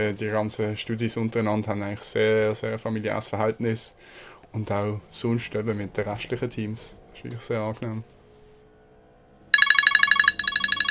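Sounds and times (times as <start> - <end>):
speech: 0.0 - 8.2
work mobile phone ringing: 9.5 - 10.8.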